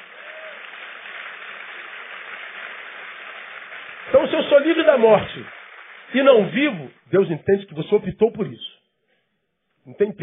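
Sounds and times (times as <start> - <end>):
audience applauding: 0.0 - 7.0
speech: 4.1 - 8.7, 9.8 - 10.2.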